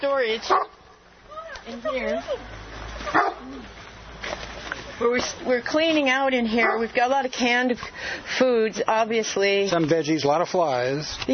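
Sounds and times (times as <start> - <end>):
speech: 0.0 - 0.8, 1.6 - 11.3
kitchen guard dog barking: 0.5 - 0.8, 3.1 - 3.6, 6.6 - 6.9
kitchen guard dog yelping: 3.0 - 3.7.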